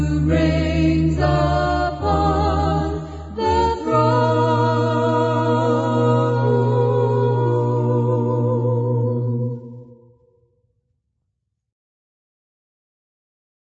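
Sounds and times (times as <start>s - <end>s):
a cappella hymn singing: 0.0s - 10.2s.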